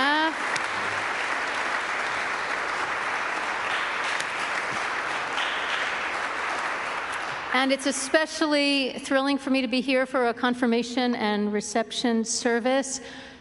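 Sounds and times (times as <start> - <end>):
round of applause: 0.0 - 8.2
speech: 7.6 - 13.3.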